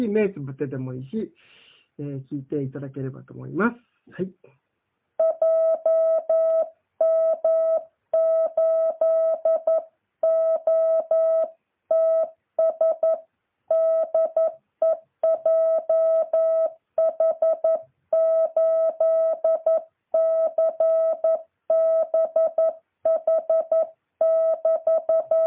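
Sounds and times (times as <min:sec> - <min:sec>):
speech: 0:00.0 - 0:04.6
Morse code tones being keyed: 0:05.2 - 0:25.4.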